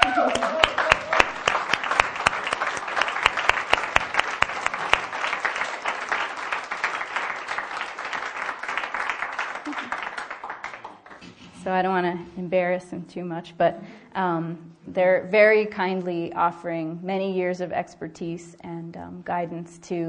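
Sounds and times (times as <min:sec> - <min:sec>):
audience applause: 0:00.0 - 0:11.2
speech: 0:12.4 - 0:20.0.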